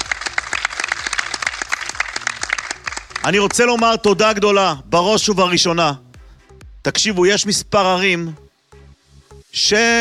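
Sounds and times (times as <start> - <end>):
audience applause: 0.0 - 4.1
speech: 3.2 - 6.0, 6.8 - 8.4, 9.5 - 10.0.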